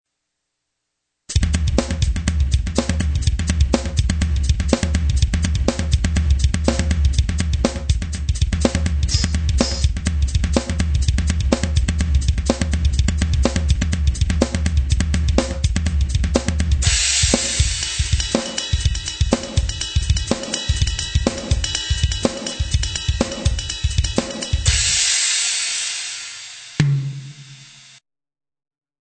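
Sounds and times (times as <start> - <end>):
drums: 1.3 - 28.0.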